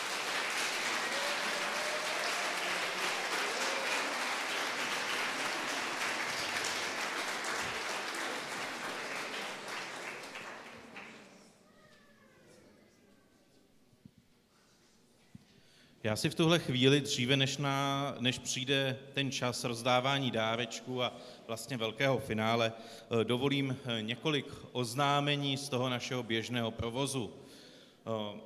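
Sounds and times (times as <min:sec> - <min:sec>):
audience applause: 0:00.0 - 0:11.5
speech: 0:16.0 - 0:28.4.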